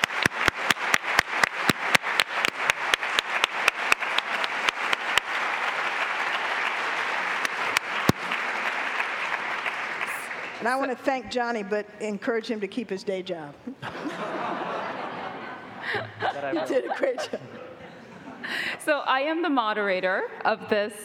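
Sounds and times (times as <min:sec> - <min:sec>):
audience giving a round of applause: 0:00.0 - 0:10.8
speech: 0:10.6 - 0:14.8, 0:15.9 - 0:17.6, 0:18.5 - 0:21.0
laughter: 0:13.7 - 0:18.7.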